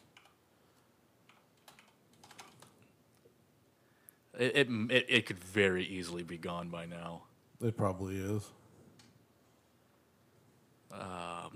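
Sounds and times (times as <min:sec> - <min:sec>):
typing on a computer keyboard: 0:00.0 - 0:00.4, 0:01.2 - 0:03.0
speech: 0:04.4 - 0:08.6, 0:10.9 - 0:11.5.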